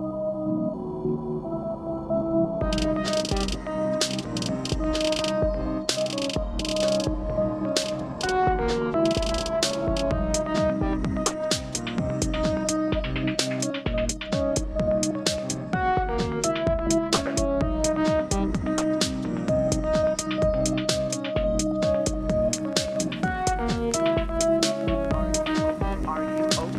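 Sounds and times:
synth rock music: 0.1 - 26.7.

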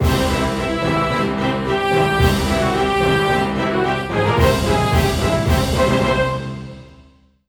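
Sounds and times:
battle cleared victory jingle: 0.0 - 7.0.

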